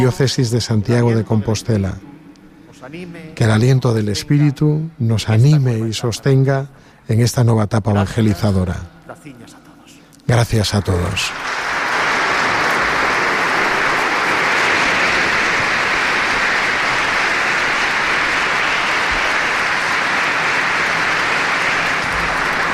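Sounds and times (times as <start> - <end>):
speech: 0.0 - 2.1, 2.8 - 9.6, 10.3 - 11.6
loud applause: 11.2 - 22.7.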